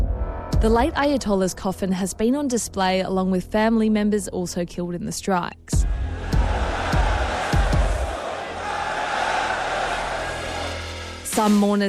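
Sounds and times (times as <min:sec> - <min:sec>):
speech: 0:00.6 - 0:06.0, 0:11.4 - 0:11.8
mourning crowd chanting in unison: 0:05.8 - 0:11.2
heavy rhythmic thuds: 0:05.8 - 0:11.6.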